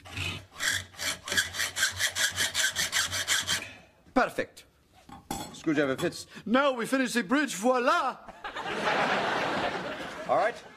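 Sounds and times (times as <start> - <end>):
hacksaw cutting a new slot across a screw head: 0.0 - 3.8
speech: 4.2 - 4.6, 5.6 - 10.7
laughter: 8.3 - 10.7.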